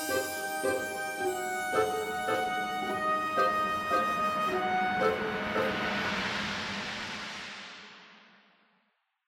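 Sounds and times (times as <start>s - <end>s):
synth pad: 0.0s - 7.2s.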